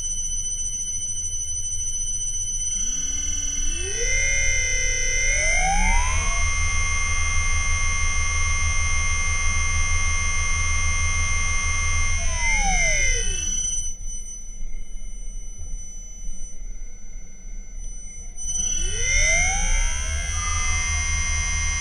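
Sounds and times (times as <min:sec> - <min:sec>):
Liebherr motor accelerating from zero to 2600 rpm with field weakening: 0:02.8 - 0:13.7, 0:18.6 - 0:21.7.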